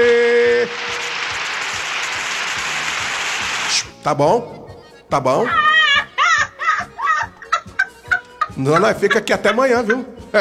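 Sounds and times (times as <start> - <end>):
applause: 0.4 - 3.9
speech: 4.0 - 5.6, 8.6 - 10.4
laughter: 4.4 - 10.4.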